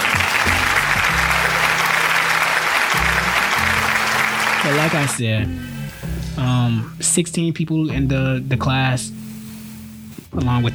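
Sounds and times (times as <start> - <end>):
round of applause: 0.0 - 5.2
speech: 4.6 - 9.2, 10.3 - 10.7.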